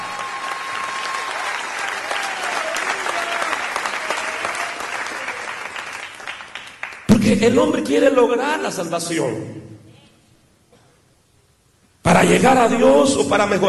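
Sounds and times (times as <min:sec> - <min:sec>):
audience applauding: 0:00.0 - 0:07.1
speech: 0:07.3 - 0:09.7, 0:12.3 - 0:13.6.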